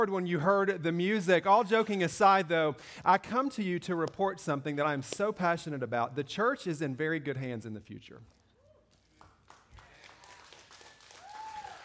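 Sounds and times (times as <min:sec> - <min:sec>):
speech: 0:00.0 - 0:08.4
weak audience applause: 0:08.9 - 0:11.8.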